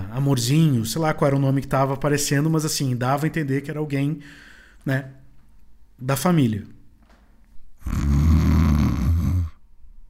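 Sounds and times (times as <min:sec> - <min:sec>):
speech: 0:00.2 - 0:05.2, 0:06.0 - 0:06.8, 0:07.8 - 0:08.2
heavy snoring: 0:07.8 - 0:09.6.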